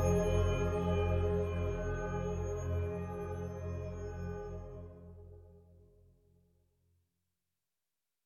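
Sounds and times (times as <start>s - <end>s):
Roland SonicCell cicada piano patch: 0.0s - 4.9s.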